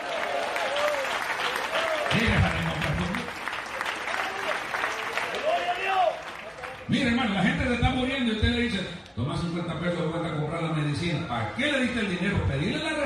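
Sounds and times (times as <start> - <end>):
audience applauding: 0.0 - 7.0
speech: 6.9 - 13.0.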